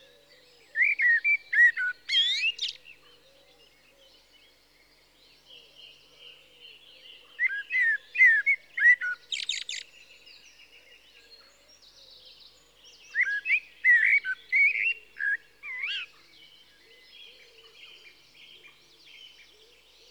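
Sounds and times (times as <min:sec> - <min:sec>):
common blackbird fluty whistled song: 0:00.7 - 0:02.9, 0:07.4 - 0:10.0, 0:12.9 - 0:16.2.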